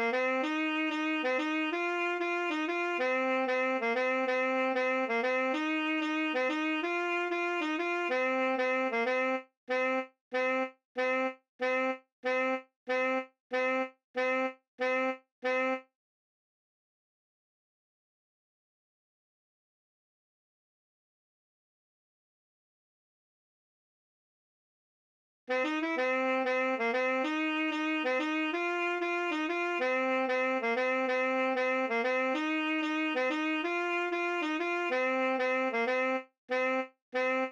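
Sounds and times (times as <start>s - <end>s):
saxophone: 0.0s - 15.9s, 25.5s - 37.5s.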